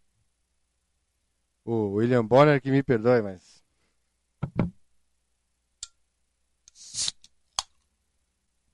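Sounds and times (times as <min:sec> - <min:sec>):
speech: 0:01.6 - 0:03.6
soda can opening: 0:06.7 - 0:07.7.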